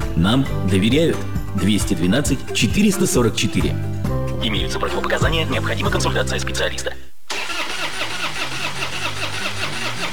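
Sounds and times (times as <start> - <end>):
speech: 0.2 - 7.0
car engine cranking, failing to start: 7.3 - 10.1.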